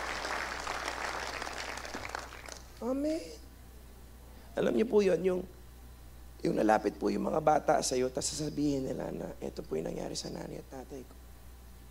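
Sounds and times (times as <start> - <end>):
audience clapping hands: 0.0 - 2.8
faint low hum: 0.0 - 11.8
speech: 2.8 - 3.4, 4.6 - 5.6, 6.4 - 11.2.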